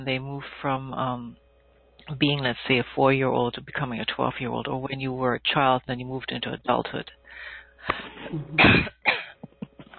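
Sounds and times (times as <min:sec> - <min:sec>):
speech: 0:00.0 - 0:01.4, 0:02.1 - 0:09.2
throat clearing: 0:08.3 - 0:09.9.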